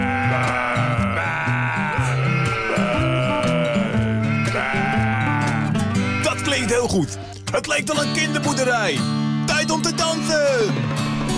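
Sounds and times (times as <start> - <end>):
children imitating a sheep bleating: 0.0 - 6.5
music with bouncing bass line: 0.0 - 11.3
speech: 6.9 - 11.0.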